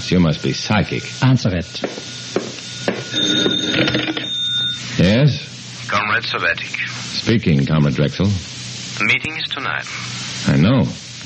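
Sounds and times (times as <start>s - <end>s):
speech: 0.0s - 2.5s, 3.1s - 4.2s, 5.0s - 11.0s
telephone ringing with a metallic bell tone: 0.3s - 4.8s.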